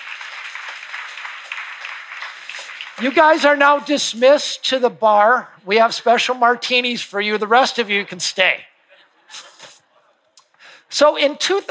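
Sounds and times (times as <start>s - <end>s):
audience applause: 0.0s - 3.5s
speech: 3.0s - 8.7s, 11.0s - 11.6s.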